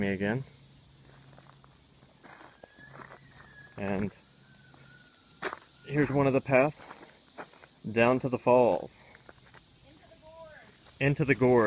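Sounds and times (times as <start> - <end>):
speech: 0.0 - 0.6, 3.8 - 4.2, 5.9 - 7.0, 7.8 - 9.0, 11.0 - 11.6
footsteps of hikers on a trail near Cascade Creek: 1.0 - 7.8, 9.0 - 9.7, 10.5 - 11.6.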